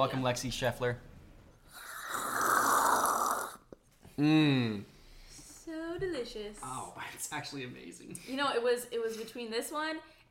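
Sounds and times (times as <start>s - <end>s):
speech: 0.0s - 1.1s, 4.2s - 4.9s, 6.0s - 10.2s
loud sip of coffee: 1.7s - 3.8s.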